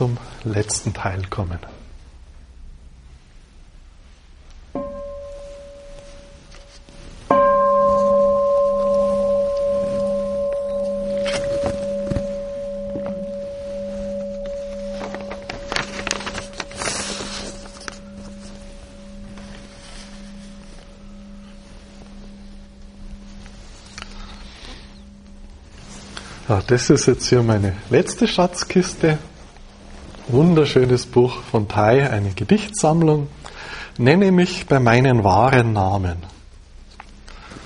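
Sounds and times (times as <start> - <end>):
speech: 0.0 - 1.8, 26.7 - 29.3, 30.3 - 33.4, 34.0 - 36.3
bell ringing: 4.8 - 27.6.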